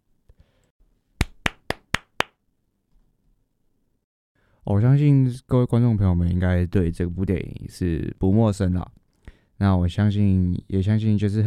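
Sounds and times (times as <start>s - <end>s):
applause: 1.2s - 2.3s
speech: 4.6s - 9.0s, 9.6s - 11.4s.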